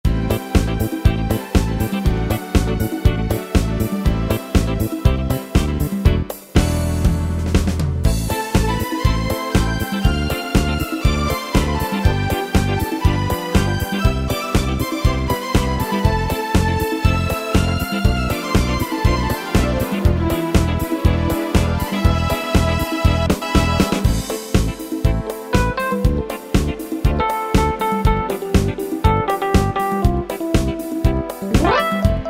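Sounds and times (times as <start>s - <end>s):
disco music on Yamaha PSR-3000 keyboard: 0.1s - 32.2s.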